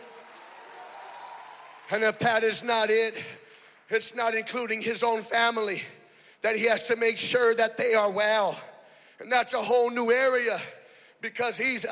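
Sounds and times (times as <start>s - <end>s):
audience clapping hands: 0.0s - 4.8s
speech: 1.9s - 11.9s.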